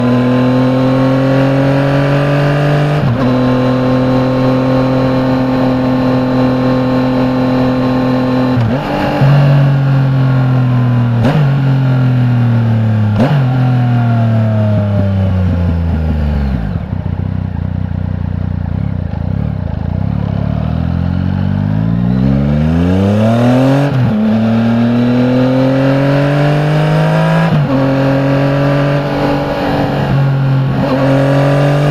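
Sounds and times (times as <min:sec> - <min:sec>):
2015 Yamaha MT09 motorcycle engine at medium drive onboard: 0:00.0 - 0:31.8
2015 Yamaha MT09 motorcycle engine starting onboard: 0:03.2 - 0:31.8.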